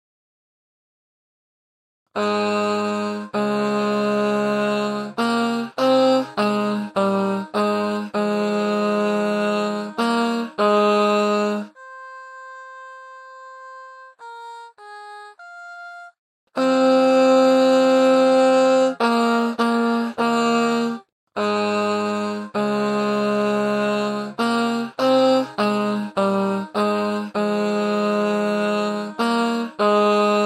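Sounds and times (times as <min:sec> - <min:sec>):
tenor singing: 0:02.2 - 0:12.2, 0:16.6 - 0:30.4.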